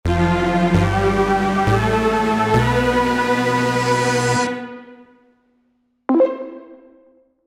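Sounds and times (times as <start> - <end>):
winning music: 0.1 - 4.8.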